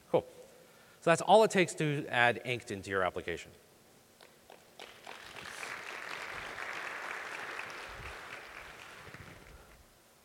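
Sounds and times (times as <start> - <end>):
speech: 0.1 - 0.4, 1.0 - 3.7
audience applause: 4.8 - 9.8.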